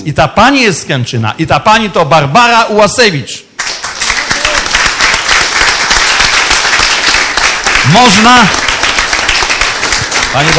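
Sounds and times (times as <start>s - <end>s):
speech: 0.0s - 3.4s, 7.9s - 8.7s, 10.3s - 10.5s
audience standing ovation applause: 3.6s - 10.5s.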